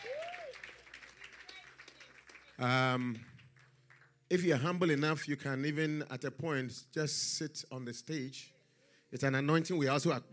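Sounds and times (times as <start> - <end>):
person whooping: 0.0 - 0.6
audience clapping: 0.0 - 4.2
speech: 2.6 - 3.3, 4.3 - 10.3.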